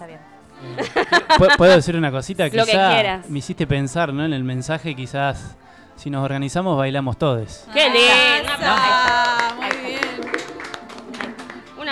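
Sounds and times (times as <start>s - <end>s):
speech: 0.0s - 9.4s
laughter: 0.6s - 2.0s, 7.8s - 10.8s
applause: 8.2s - 11.9s.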